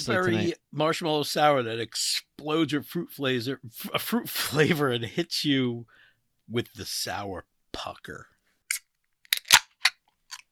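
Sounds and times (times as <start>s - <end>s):
speech: 0.0s - 8.3s
beverage can being cracked open: 8.7s - 10.5s.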